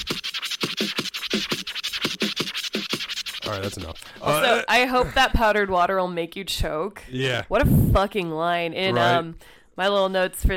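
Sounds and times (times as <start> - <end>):
turntable scratching solo: 0.0 - 4.8
speech: 3.5 - 10.5.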